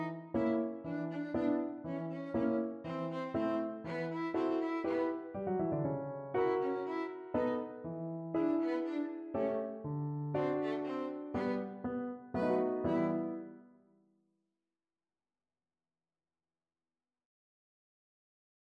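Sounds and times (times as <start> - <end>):
piano trio: 0.0 - 13.6.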